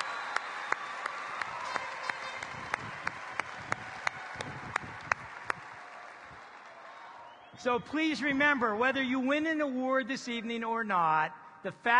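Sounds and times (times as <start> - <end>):
arena audience applause: 0.0 - 7.6
speech: 7.6 - 11.9.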